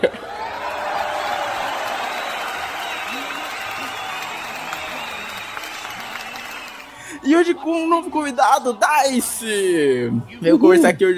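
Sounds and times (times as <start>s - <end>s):
applause: 0.3s - 7.1s
speech: 7.4s - 11.1s.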